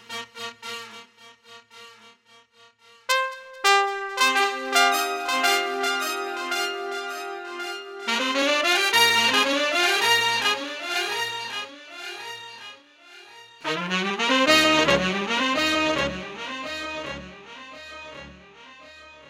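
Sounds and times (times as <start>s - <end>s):
fanfare: 3.1s - 12.7s, 13.6s - 18.5s.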